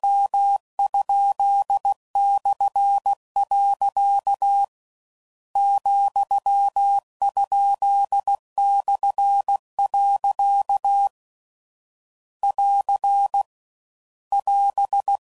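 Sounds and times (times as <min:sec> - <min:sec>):
Morse code punctuation code groups at 15 WPM: 0:00.0 - 0:04.7, 0:05.6 - 0:11.1, 0:12.4 - 0:13.5, 0:14.3 - 0:15.2.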